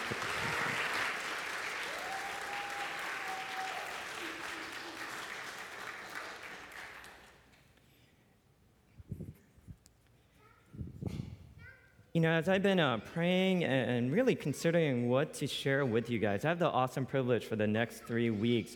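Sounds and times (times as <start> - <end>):
audience applause: 0.0 - 7.5
speech: 12.2 - 18.7.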